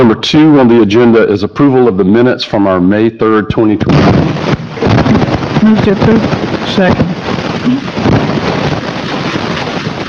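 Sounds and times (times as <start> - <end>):
speech: 0.0 - 4.6, 5.6 - 8.0
breaking waves: 3.9 - 10.0.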